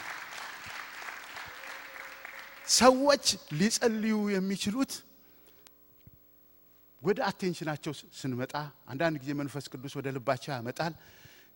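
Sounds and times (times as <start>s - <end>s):
applause during a church service: 0.0s - 3.8s
speech: 2.7s - 5.1s, 7.1s - 11.3s.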